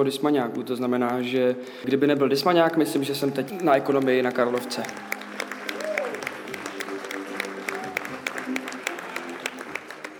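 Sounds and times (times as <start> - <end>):
speech: 0.0 - 5.2
audience applause after a performance: 2.6 - 10.1.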